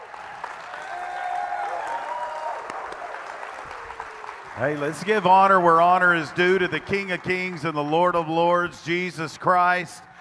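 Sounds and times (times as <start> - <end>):
cheers and whoops: 0.0 - 4.5
audience clapping: 0.0 - 9.3
speech: 4.6 - 10.1.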